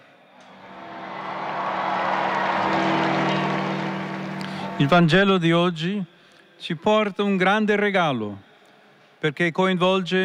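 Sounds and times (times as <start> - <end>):
large crowd in St. Peter's Square roaring with mingled voices: 0.4 - 5.0
speech: 4.8 - 8.5, 9.2 - 10.2.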